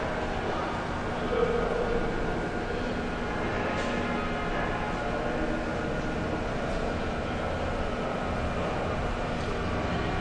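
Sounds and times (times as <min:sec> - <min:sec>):
subway station ambience: 0:00.0 - 0:10.1.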